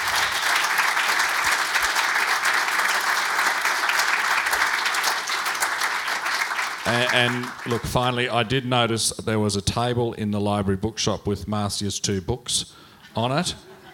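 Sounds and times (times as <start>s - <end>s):
round of applause: 0.0s - 8.4s
speech: 6.9s - 13.7s.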